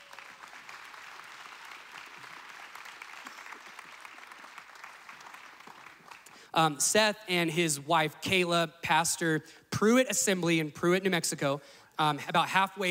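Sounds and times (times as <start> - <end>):
church audience applause welcoming a pastor: 0.0 - 6.4
speech: 6.5 - 12.8.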